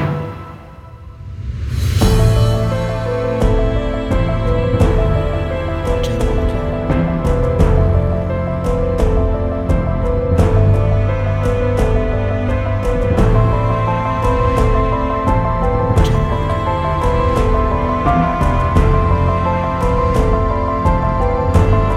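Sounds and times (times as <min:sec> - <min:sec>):
emotional piano music: 0:00.0 - 0:21.9.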